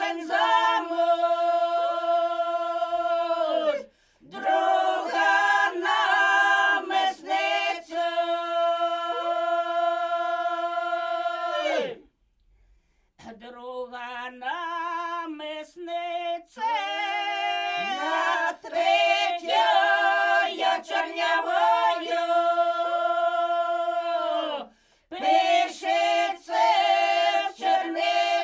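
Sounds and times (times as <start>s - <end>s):
polyphonic singing from Polesie in Ukraine: 0.0s - 12.1s, 15.2s - 28.4s.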